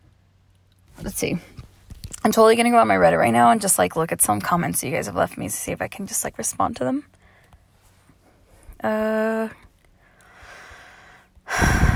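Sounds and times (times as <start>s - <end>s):
speech: 1.2s - 1.6s, 2.2s - 7.2s, 8.8s - 9.6s
breathing into microphone: 10.0s - 11.9s.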